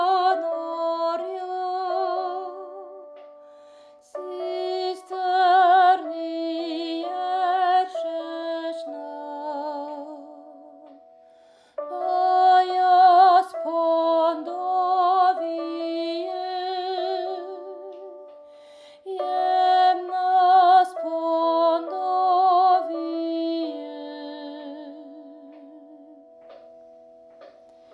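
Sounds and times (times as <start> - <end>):
soprano voice: 0.0 - 11.1, 11.8 - 26.4.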